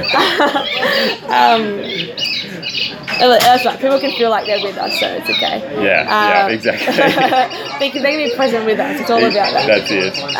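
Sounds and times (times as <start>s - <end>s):
laughter: 0.0s - 2.9s, 6.3s - 10.3s
birds calling in the background: 0.0s - 10.3s
speech: 0.1s - 10.3s.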